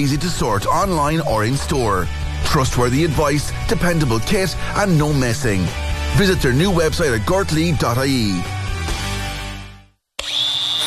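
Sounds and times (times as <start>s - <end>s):
speech: 0.0s - 8.6s
power tool motor drone in an advert: 10.2s - 10.8s.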